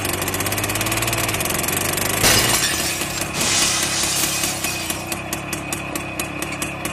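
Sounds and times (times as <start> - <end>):
heavy diesel tractor engine idling and revving: 0.0 - 6.3
shop glass shattering: 2.2 - 5.2
glass debris tinkling and crunching: 2.2 - 5.3.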